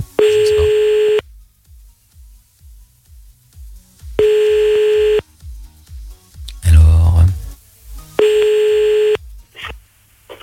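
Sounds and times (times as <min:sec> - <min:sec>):
telephone ringback tone while redialing: 0:00.2 - 0:01.2, 0:04.2 - 0:05.2, 0:08.2 - 0:09.2.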